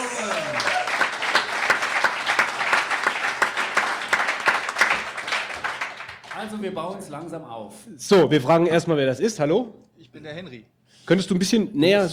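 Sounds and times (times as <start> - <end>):
live audience applause: 0.0 - 6.6
speech: 6.6 - 12.1.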